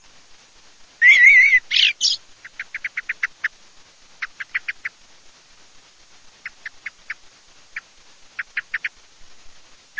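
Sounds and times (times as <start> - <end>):
Eurasian blackbird calls: 1.0 - 3.6, 4.2 - 5.0, 6.4 - 9.0.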